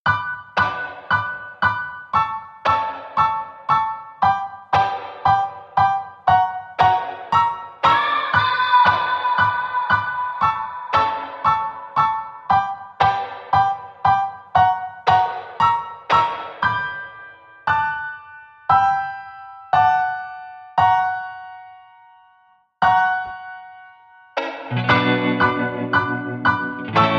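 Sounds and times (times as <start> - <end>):
piano: 0.0 - 27.1
vocal shout: 7.8 - 11.4
guitars: 24.5 - 27.1.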